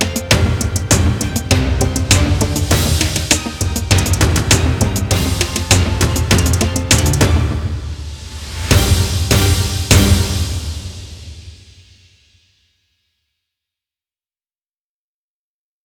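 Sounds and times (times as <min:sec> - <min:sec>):
dramatic corporate music: 0:00.0 - 0:11.7.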